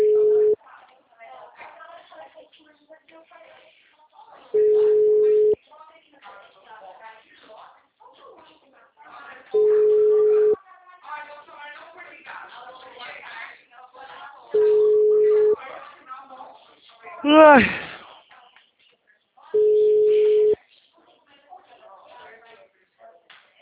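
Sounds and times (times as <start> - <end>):
telephone busy tone after a dropped call: 0.0 - 0.6, 4.6 - 5.6, 9.6 - 10.6, 14.6 - 15.6, 19.6 - 20.6
speech: 17.6 - 17.8.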